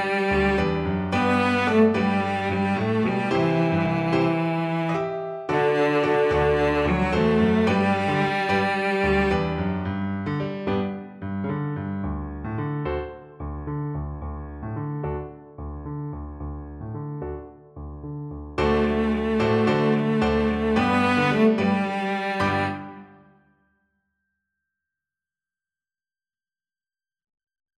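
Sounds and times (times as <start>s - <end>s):
violoncello: 0.0s - 12.8s, 14.8s - 23.2s.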